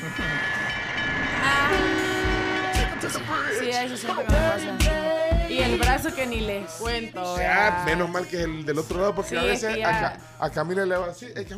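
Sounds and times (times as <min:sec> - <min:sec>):
train passing: 0:00.0 - 0:06.3
speech: 0:03.1 - 0:11.5.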